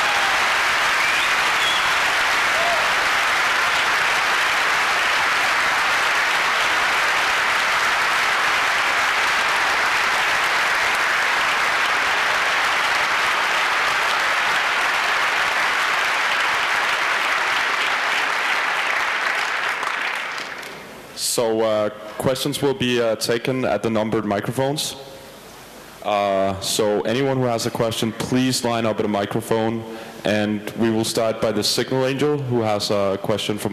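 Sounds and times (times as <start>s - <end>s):
conference audience applause after a talk: 0.0s - 21.0s
speech: 21.5s - 25.1s, 26.0s - 33.7s.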